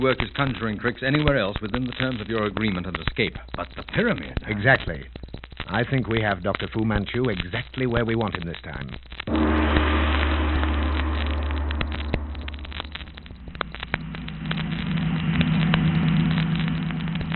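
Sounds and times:
speech: 0:00.0 - 0:09.4
car engine droning as the car drives fast at night: 0:09.3 - 0:17.3.

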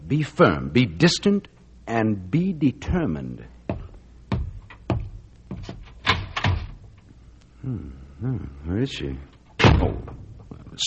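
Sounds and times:
speech: 0:00.1 - 0:03.6, 0:07.6 - 0:10.2
door being worked open with wooden clunks and rattles: 0:04.3 - 0:06.8, 0:09.6 - 0:10.4.

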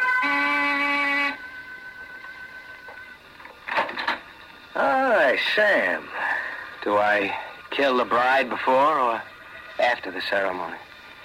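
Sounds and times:
door buzzer ringing: 0:00.0 - 0:04.4
faint hum: 0:00.0 - 0:11.2
speech: 0:04.8 - 0:06.2, 0:06.8 - 0:10.9.

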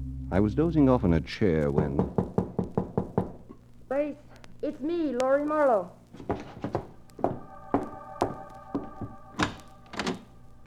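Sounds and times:
speech: 0:00.3 - 0:02.3, 0:04.1 - 0:06.4
dull hollow knocks on a door: 0:01.8 - 0:03.4, 0:06.2 - 0:07.4.

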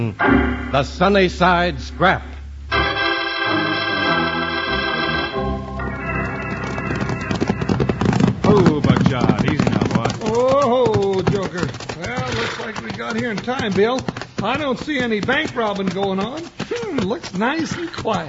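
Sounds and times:
speech: 0:00.0 - 0:02.3, 0:11.5 - 0:18.2
lathered horses walking: 0:03.8 - 0:18.2.

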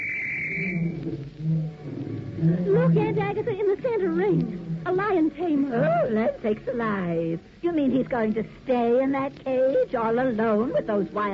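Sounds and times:
whistle blown at a circus show: 0:00.0 - 0:01.0
low sustained rumbling tones: 0:00.0 - 0:11.3
speech: 0:02.4 - 0:11.3.

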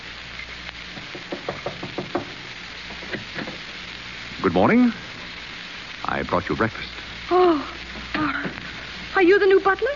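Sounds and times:
faint hiss: 0:00.0 - 0:09.9
knocking on a door: 0:01.0 - 0:03.6
speech: 0:04.4 - 0:05.0, 0:06.1 - 0:07.7, 0:09.2 - 0:09.9.

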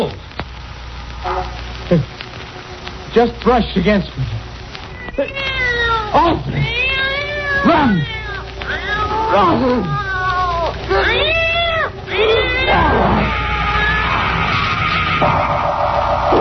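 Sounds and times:
low steady rumble: 0:00.0 - 0:16.3
cat yowling: 0:01.2 - 0:02.1, 0:04.8 - 0:15.3
speech: 0:01.9 - 0:02.2, 0:03.1 - 0:04.4, 0:05.2 - 0:05.5, 0:06.1 - 0:06.8, 0:07.6 - 0:08.2, 0:09.3 - 0:10.0.

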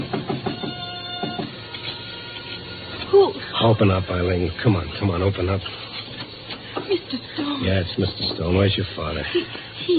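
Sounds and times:
knocking on a back door: 0:00.0 - 0:01.6
faint steady hum: 0:00.0 - 0:09.9
speech: 0:03.1 - 0:06.0, 0:06.9 - 0:09.9.

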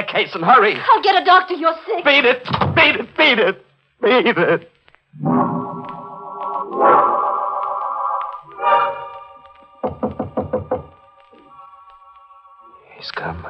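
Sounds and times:
speech: 0:00.2 - 0:05.9
loud sustained musical chords: 0:05.2 - 0:13.4
knocks on a door: 0:09.8 - 0:11.0.

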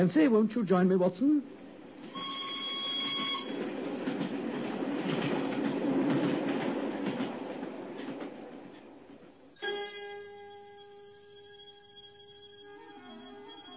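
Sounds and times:
speech: 0:00.0 - 0:01.6
train carriage thundering past: 0:00.0 - 0:09.6
high whistle-like tone: 0:02.1 - 0:03.6, 0:09.6 - 0:13.7.

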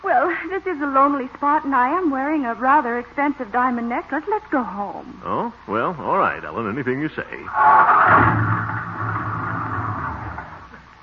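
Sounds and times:
speech: 0:00.5 - 0:08.9
car engine stalling after running out of gas: 0:07.5 - 0:10.9.

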